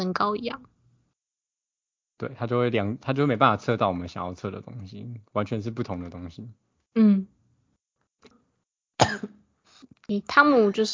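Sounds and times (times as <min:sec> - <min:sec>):
speech: 0:00.0 - 0:00.8, 0:02.2 - 0:07.3, 0:10.1 - 0:10.9
person coughing from acid reflux: 0:09.0 - 0:09.3.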